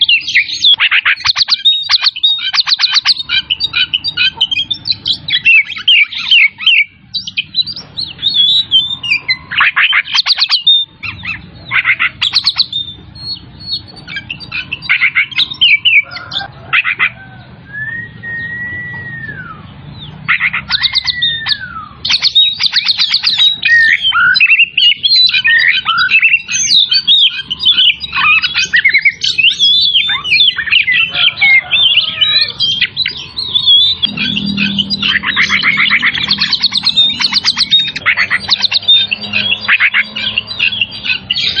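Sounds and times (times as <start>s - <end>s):
Oriental magpie-robin song: 0.0s - 41.5s.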